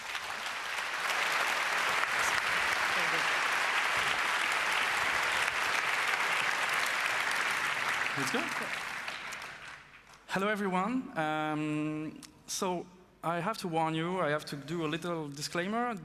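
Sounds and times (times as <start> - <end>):
audience applause for speakers: 0.0 - 10.1
speech: 8.2 - 8.9, 10.3 - 16.0.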